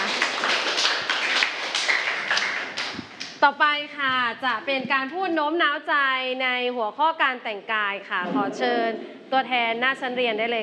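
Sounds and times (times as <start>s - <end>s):
class applauding: 0.0s - 3.4s
speech: 3.4s - 10.6s.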